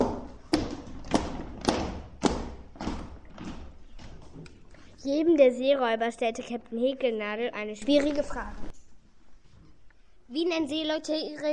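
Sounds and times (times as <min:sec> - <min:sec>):
heavy stomping footsteps: 0:00.0 - 0:04.9
speech: 0:05.0 - 0:08.8, 0:10.3 - 0:11.5.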